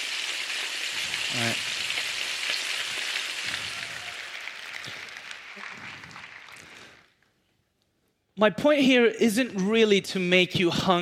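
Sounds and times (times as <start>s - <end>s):
bacon sizzling in a frying pan: 0.0s - 4.3s
speech: 1.3s - 1.7s, 8.4s - 11.0s.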